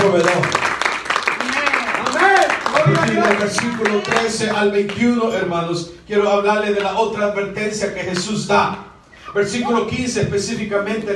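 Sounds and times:
speech: 0.0 - 0.7, 2.9 - 11.1
audience applause: 0.0 - 4.8.

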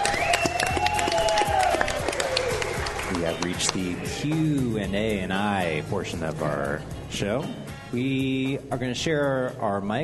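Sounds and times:
audience applause: 0.0 - 4.1
speech: 3.4 - 10.0.

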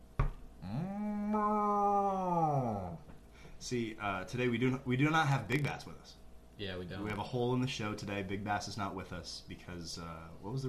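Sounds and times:
person imitating a cow mooing: 0.6 - 3.0
speech: 3.6 - 10.6.

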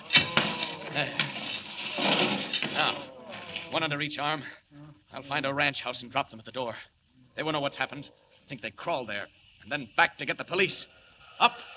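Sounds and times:
metal chains being broken: 0.0 - 4.0
speech: 1.0 - 1.3, 3.7 - 11.7.

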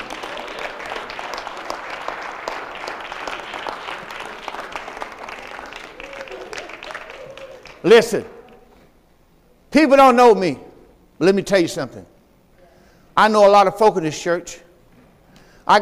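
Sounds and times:
audience clapping: 0.0 - 8.7
speech: 7.8 - 8.4, 9.7 - 10.6, 11.2 - 12.1, 13.2 - 14.6.

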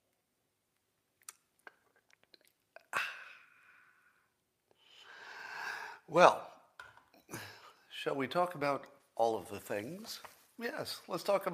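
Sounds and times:
wet clicks and lip sounds: 1.2 - 3.2
person sipping a drink: 1.2 - 3.5
breathy exhale: 3.0 - 6.1
speech: 6.1 - 6.4, 8.0 - 11.5.

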